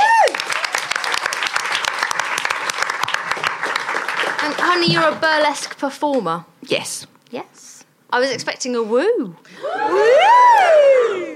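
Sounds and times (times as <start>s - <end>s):
audience applause: 0.0s - 4.9s
speech: 4.8s - 11.0s.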